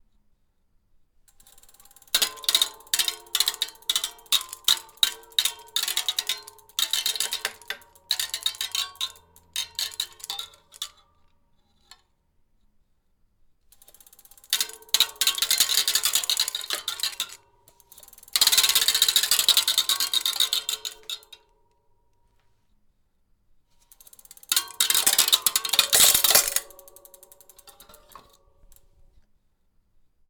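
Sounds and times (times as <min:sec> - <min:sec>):
belt buckle on a spinning bicycle wheel: 0:01.3 - 0:12.1, 0:13.7 - 0:21.3, 0:23.8 - 0:29.0.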